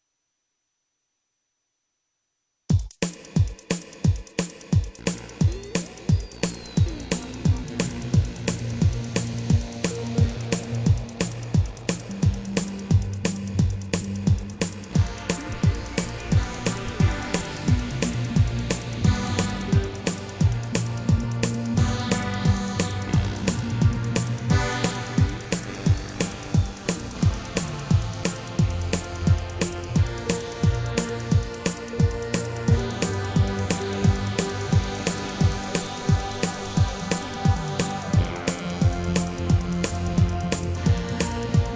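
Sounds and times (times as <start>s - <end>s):
instrumental music: 3.1s - 41.7s.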